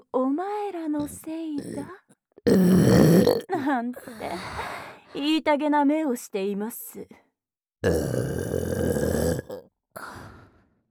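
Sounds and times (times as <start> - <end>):
speech: 0.1 - 7.2, 7.8 - 8.5
burping: 1.0 - 3.5, 7.8 - 9.7.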